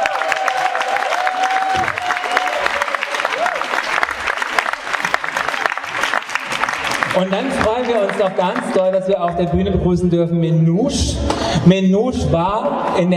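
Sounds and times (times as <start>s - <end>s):
audience applause: 0.0s - 9.1s
speech: 7.2s - 13.1s.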